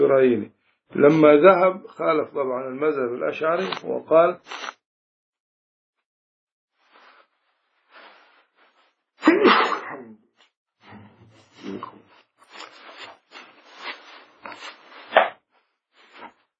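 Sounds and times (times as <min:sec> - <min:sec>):
speech: 0:00.0 - 0:04.8
person sneezing: 0:09.2 - 0:10.2.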